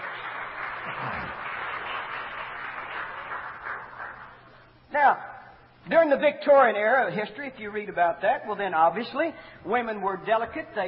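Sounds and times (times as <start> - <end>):
audience clapping: 0.0 - 4.7
speech: 5.0 - 5.3, 5.9 - 10.8.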